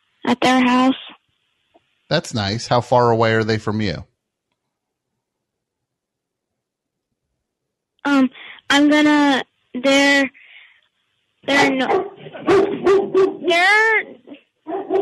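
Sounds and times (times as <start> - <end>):
speech: 0.4 - 1.1, 2.1 - 4.1, 8.0 - 10.4, 11.4 - 15.0
dog barking: 11.5 - 13.5, 14.7 - 15.0.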